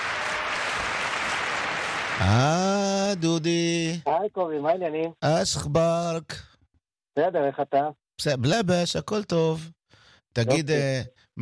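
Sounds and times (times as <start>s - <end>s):
crowd applause: 0.0s - 3.4s
speech: 2.2s - 6.5s, 7.2s - 9.8s, 10.4s - 11.4s.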